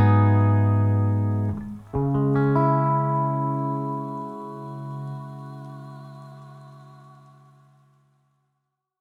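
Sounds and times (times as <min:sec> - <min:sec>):
instrumental music: 0:00.0 - 0:07.0.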